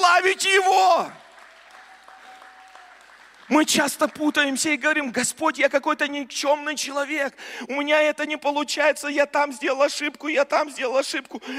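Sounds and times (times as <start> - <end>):
speech: 0.2 - 1.2, 3.5 - 11.5
audience applause: 0.2 - 4.6.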